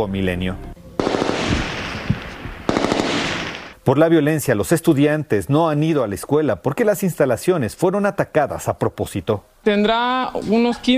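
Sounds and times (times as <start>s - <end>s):
speech: 0.0s - 0.7s, 3.9s - 10.9s
gunfire from armed men: 1.0s - 3.8s.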